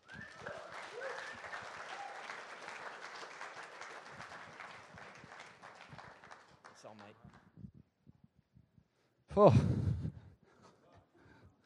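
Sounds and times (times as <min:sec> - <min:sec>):
whoops: 0:00.0 - 0:02.4
church congregation applauding a man coming on stage: 0:00.0 - 0:07.4
speech: 0:09.4 - 0:09.8.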